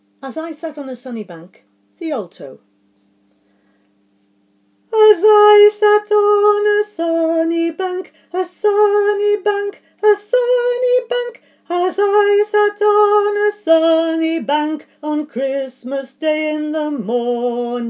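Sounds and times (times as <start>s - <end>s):
alto voice singing: 4.9s - 17.8s.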